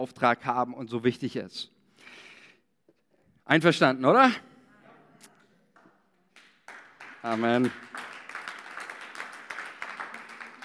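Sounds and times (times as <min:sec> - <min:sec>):
speech: 0:00.0 - 0:02.2, 0:03.5 - 0:04.5, 0:07.2 - 0:08.0
audience applause: 0:06.4 - 0:10.6.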